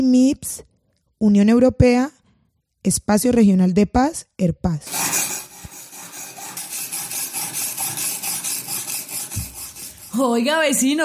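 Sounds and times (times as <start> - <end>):
speech: 0.0 - 2.2, 2.8 - 5.3, 10.2 - 11.0
machete being sharpened with a file: 4.9 - 10.4.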